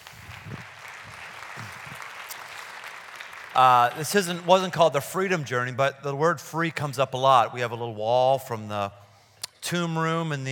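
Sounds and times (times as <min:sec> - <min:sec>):
audience applause: 0:00.0 - 0:04.8
speech: 0:03.6 - 0:09.0, 0:09.7 - 0:10.5.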